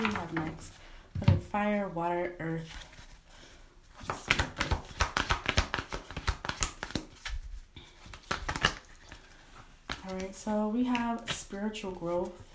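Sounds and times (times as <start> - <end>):
tarot cards being shuffled and drawn: 0.0 - 0.6, 3.9 - 12.5
speech: 1.5 - 2.9, 10.1 - 12.5.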